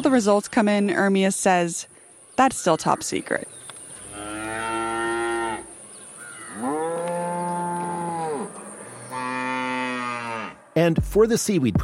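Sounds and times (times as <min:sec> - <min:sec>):
speech: 0:00.0 - 0:03.6, 0:10.8 - 0:11.8
cattle mooing: 0:04.0 - 0:05.8, 0:06.4 - 0:10.7.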